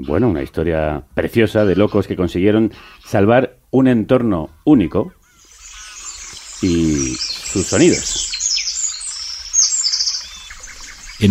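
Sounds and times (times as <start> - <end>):
speech: 0.0 - 5.2, 6.6 - 8.3
nightingale singing: 1.3 - 3.3, 4.5 - 11.2
distant cuckoo calling: 1.4 - 2.2, 4.5 - 11.2.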